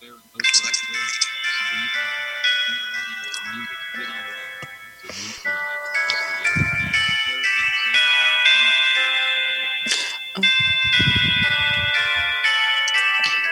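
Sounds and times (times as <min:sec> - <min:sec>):
clock chime played on phone: 0:00.0 - 0:13.5
low thumps and murmurs: 0:01.7 - 0:09.1, 0:10.4 - 0:12.4.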